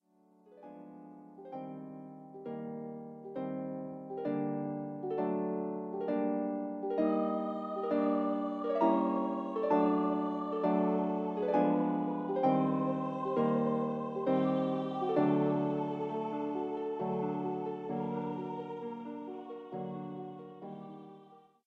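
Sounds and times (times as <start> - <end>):
harp: 0.5 - 21.4
person singing: 6.8 - 21.4.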